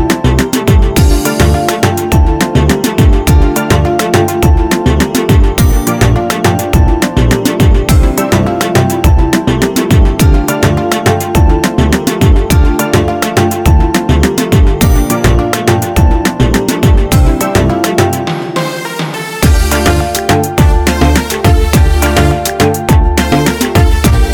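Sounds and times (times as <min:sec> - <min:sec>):
dancehall music: 0:00.0 - 0:24.3.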